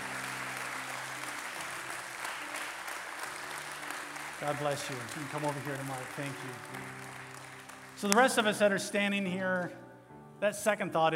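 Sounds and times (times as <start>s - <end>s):
audience clapping: 0.0s - 8.8s
speech: 4.4s - 7.2s, 8.0s - 9.8s, 10.4s - 11.1s.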